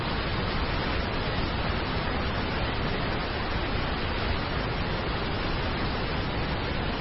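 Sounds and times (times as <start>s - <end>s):
roar of Niagara Falls waterfall: 0.0s - 6.9s.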